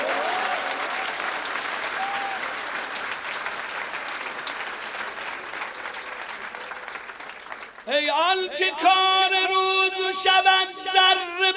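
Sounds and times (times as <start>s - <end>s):
many people clapping: 0.0s - 8.5s
speech: 7.9s - 11.5s.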